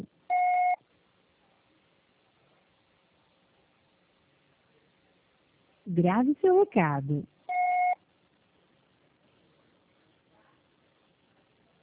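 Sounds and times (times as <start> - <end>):
Oi voicemail system beep: 0.3 - 0.8, 7.5 - 8.0
speech: 5.9 - 7.3.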